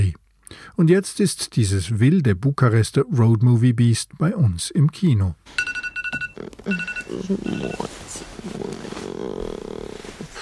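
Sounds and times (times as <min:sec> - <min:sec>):
speech: 0:00.6 - 0:05.7, 0:06.4 - 0:09.4
alarm clock ringing with electronic beeps: 0:05.5 - 0:07.9.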